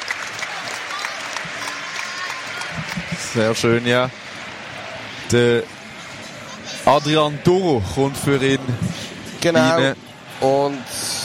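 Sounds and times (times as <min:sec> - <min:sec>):
large stadium crowd applauding departing player: 0:00.0 - 0:04.8
speech: 0:03.4 - 0:04.2, 0:05.3 - 0:05.8, 0:06.9 - 0:11.0.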